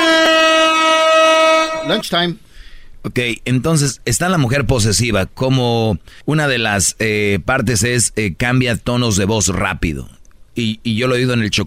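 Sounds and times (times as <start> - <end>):
bugle horn: 0.0 - 2.0
speech: 1.9 - 11.6.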